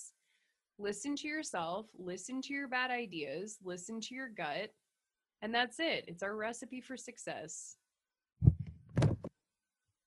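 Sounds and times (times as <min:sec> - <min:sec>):
speech: 0:00.8 - 0:04.8, 0:05.4 - 0:07.8
microphone knocked over: 0:08.4 - 0:09.3.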